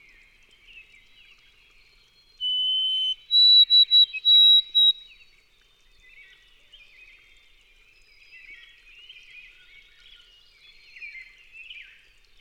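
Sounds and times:
White-throated Sparrow birdsong: 0:02.4 - 0:05.2.

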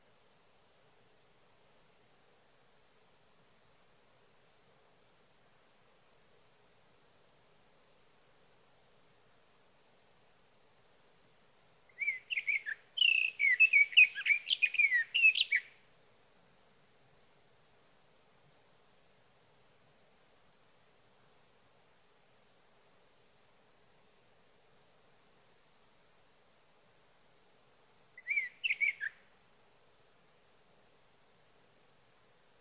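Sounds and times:
sage thrasher: 0:12.0 - 0:15.8, 0:28.2 - 0:29.2.

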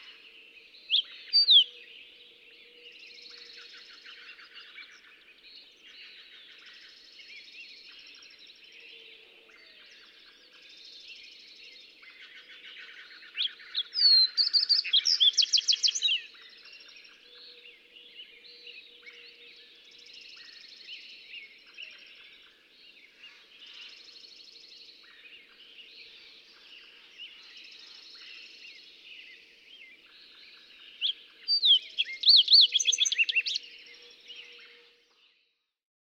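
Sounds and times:
Fox Sparrow calling: 0:13.6 - 0:16.3, 0:31.0 - 0:33.6.

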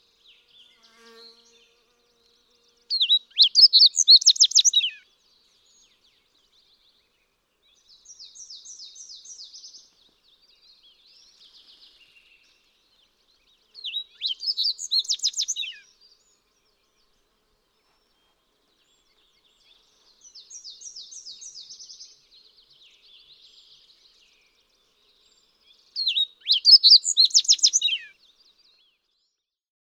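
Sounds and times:
Fox Sparrow call: 0:02.9 - 0:05.0, 0:13.8 - 0:15.9, 0:26.0 - 0:28.1.

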